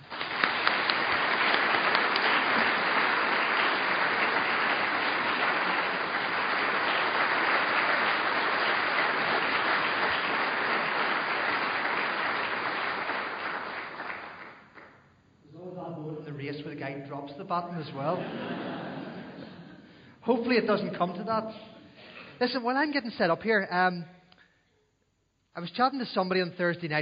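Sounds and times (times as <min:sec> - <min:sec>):
audience round of applause: 0:00.0 - 0:14.9
speech: 0:17.5 - 0:18.8, 0:20.2 - 0:21.7, 0:22.4 - 0:24.2, 0:25.6 - 0:27.0
laughter: 0:17.9 - 0:19.9.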